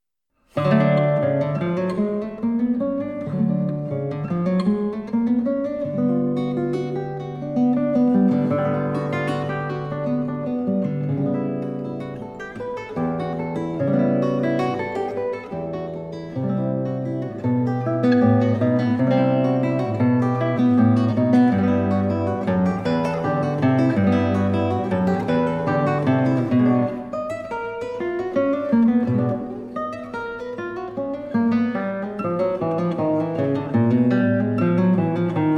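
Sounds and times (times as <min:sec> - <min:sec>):
guitar arpeggios: 0:00.5 - 0:35.5.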